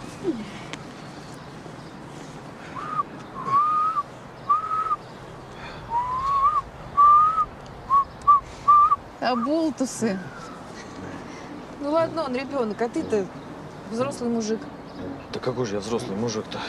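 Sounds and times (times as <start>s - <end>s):
man whistling short notes: 2.8s - 5.0s, 5.9s - 9.0s
speech: 9.3s - 10.5s, 11.8s - 14.7s, 15.4s - 16.6s.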